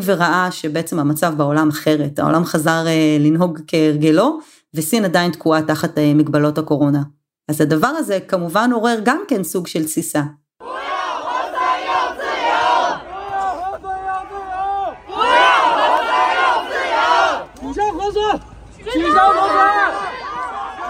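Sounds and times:
speech: 0:00.0 - 0:10.4
protest crowd chanting slogans in unison: 0:10.6 - 0:20.8.

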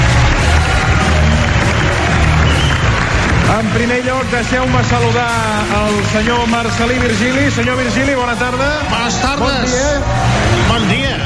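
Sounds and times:
audience applause: 0:00.0 - 0:11.2
speech: 0:03.6 - 0:11.2.

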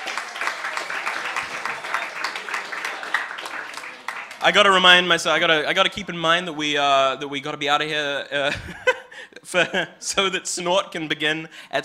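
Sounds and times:
audience applause: 0:00.0 - 0:05.2
speech: 0:04.4 - 0:08.9, 0:09.5 - 0:11.8
laughter: 0:08.4 - 0:10.0.

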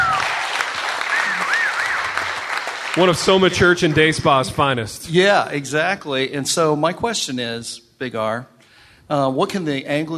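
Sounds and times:
audience applause: 0:00.0 - 0:04.8
speech: 0:03.0 - 0:08.5, 0:09.1 - 0:10.1.

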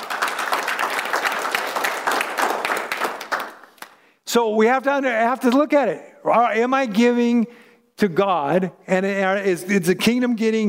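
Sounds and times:
audience applause: 0:00.0 - 0:04.0
speech: 0:04.3 - 0:10.6.

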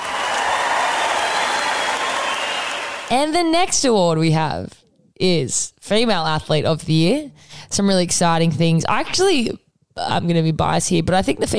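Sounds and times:
applause sound effect: 0:00.0 - 0:03.1
speech: 0:03.1 - 0:11.5.

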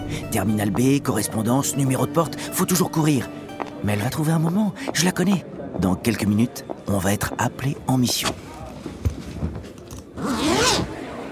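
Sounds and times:
speech: 0:00.1 - 0:08.4
toiletry bag zipper pulled open: 0:10.0 - 0:11.0.

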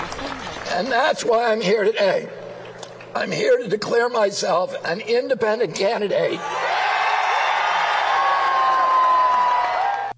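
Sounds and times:
crowd cheering at a rally: 0:00.0 - 0:00.9, 0:06.4 - 0:10.1
speech: 0:00.8 - 0:02.4, 0:03.1 - 0:06.7.

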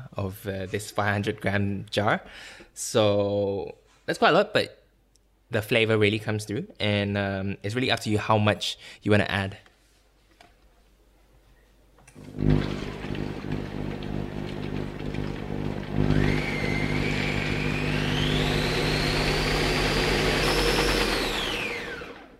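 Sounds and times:
speech: 0:00.2 - 0:04.8, 0:05.5 - 0:09.7, 0:12.2 - 0:12.9
blender whipping thick tahini: 0:12.2 - 0:22.3.

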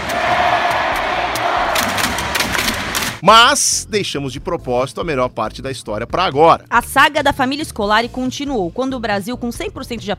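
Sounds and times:
Korean football fans' war cry chant: 0:00.0 - 0:02.4
speech: 0:03.2 - 0:10.1.

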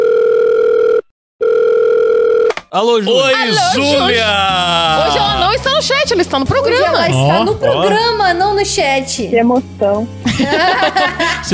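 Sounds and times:
telephone dial tone while calling someone: 0:00.0 - 0:02.5
speech: 0:02.8 - 0:11.5
laughter: 0:03.3 - 0:08.4, 0:10.2 - 0:11.5.

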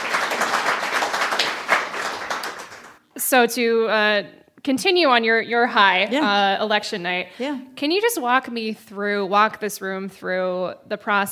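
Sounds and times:
audience applause: 0:00.0 - 0:03.0
speech: 0:03.3 - 0:11.2.

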